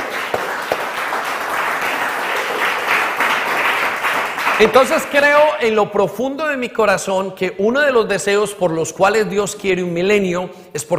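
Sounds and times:
audience applause: 0.0 - 5.2
speech: 4.6 - 10.9.

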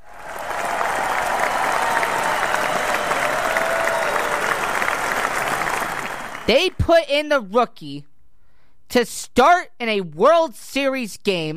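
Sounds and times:
round of applause: 0.0 - 6.8
speech: 6.5 - 8.1, 8.9 - 11.5.

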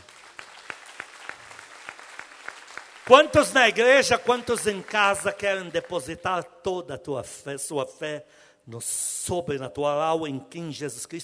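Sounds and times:
audience applauding: 0.0 - 6.1
speech: 3.1 - 11.2.

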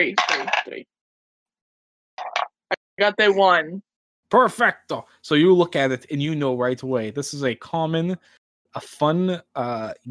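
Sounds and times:
speech: 0.0 - 0.9, 3.0 - 10.0
dice rolling: 0.2 - 0.8.

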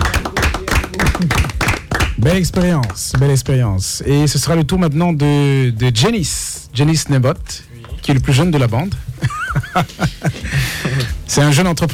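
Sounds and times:
audience applause: 0.0 - 2.2
speech: 1.2 - 1.5, 2.2 - 11.9
laughter: 9.0 - 11.1.

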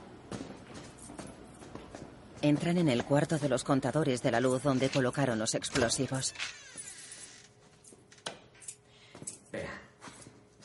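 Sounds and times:
footsteps of two people walking down building stairs: 0.0 - 3.7, 6.8 - 10.6
speech: 2.4 - 6.7.

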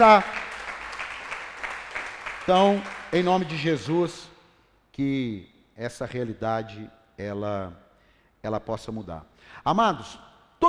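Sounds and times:
speech: 0.0 - 0.4, 2.5 - 4.3, 5.0 - 7.8, 8.4 - 10.6
audience applause: 0.0 - 3.9.

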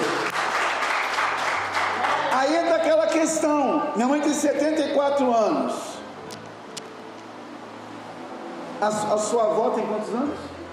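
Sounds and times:
audience applause: 0.0 - 2.7
speech: 2.4 - 5.9, 8.8 - 10.5.

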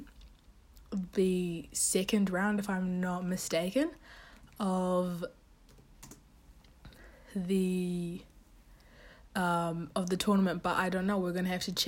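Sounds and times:
speech: 0.9 - 5.4, 7.3 - 8.3, 9.4 - 11.8
typing on a computer keyboard while pulling up a tennis tournament draw: 5.7 - 6.2.

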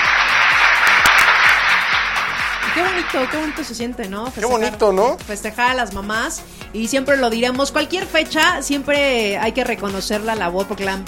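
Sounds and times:
audience applause: 0.0 - 3.7
speech: 2.9 - 11.0.

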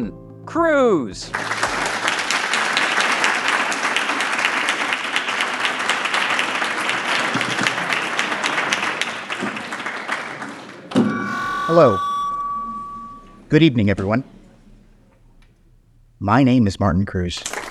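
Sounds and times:
speech: 0.0 - 1.6, 11.7 - 12.1, 13.5 - 14.4, 16.2 - 17.6
audience applause: 1.4 - 13.5.

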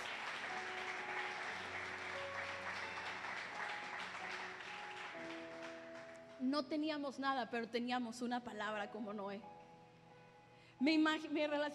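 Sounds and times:
audience applauding: 0.0 - 6.4
speech: 6.4 - 9.6, 10.8 - 11.7.

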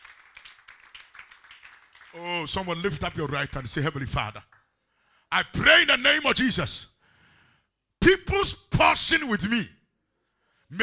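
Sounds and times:
audience clapping: 0.0 - 4.8
speech: 2.1 - 4.6, 5.3 - 6.9, 8.4 - 9.8.

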